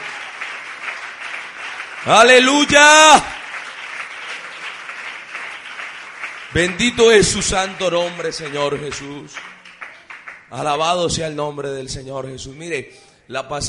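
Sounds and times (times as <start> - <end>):
audience applause: 0.0 - 10.5
speech: 2.0 - 3.4, 6.6 - 9.5, 10.5 - 13.6
person shouting: 2.3 - 3.4.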